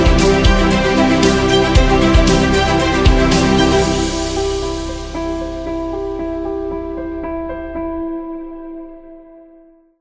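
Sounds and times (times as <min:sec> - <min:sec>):
wedding music: 0:00.0 - 0:06.2.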